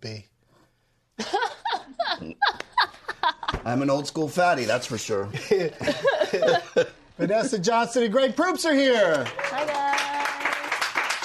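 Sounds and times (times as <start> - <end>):
speech: 0.0 - 0.3, 3.7 - 9.7
laughter: 1.2 - 3.6, 5.3 - 7.7
hearty audience clapping: 8.8 - 11.2
voices cheering or calling out: 9.2 - 11.2.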